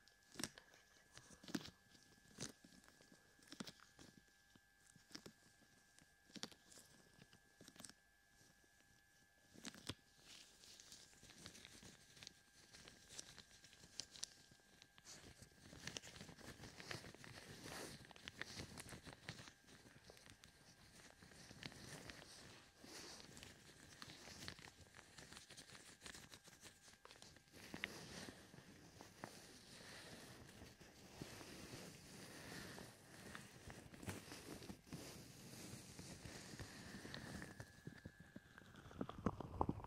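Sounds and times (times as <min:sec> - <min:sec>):
faint steady tone: 0:00.0 - 0:39.8
gloved hands cupping and rubbing over the ears: 0:10.2 - 0:38.2.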